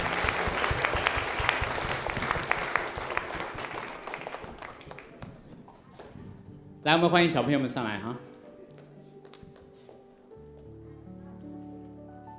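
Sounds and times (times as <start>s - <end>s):
applause: 0.0s - 5.4s
speech: 6.8s - 8.3s.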